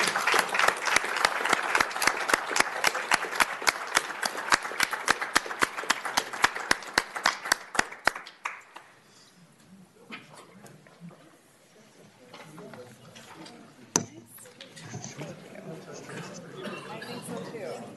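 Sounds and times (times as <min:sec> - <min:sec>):
audience applause for candidates: 0:00.0 - 0:08.9.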